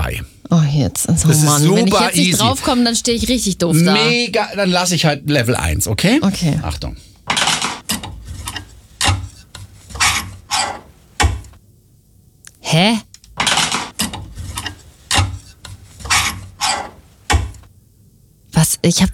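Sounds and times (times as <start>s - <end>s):
speech: 0.1s - 7.1s, 12.7s - 13.1s, 18.8s - 19.1s
metal clothes hanger scraping along a wardrobe rail: 7.2s - 11.6s, 13.3s - 17.6s.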